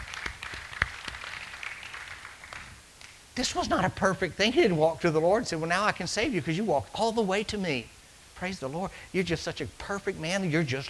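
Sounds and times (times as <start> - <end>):
hand clapping: 0.0 - 3.2
speech: 3.4 - 10.8.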